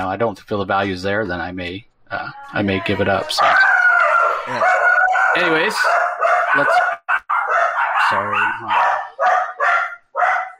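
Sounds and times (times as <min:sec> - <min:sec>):
speech: 0:00.0 - 0:03.6, 0:04.5 - 0:06.0, 0:06.6 - 0:06.9, 0:08.1 - 0:09.4
dog barking excitedly: 0:03.4 - 0:10.5.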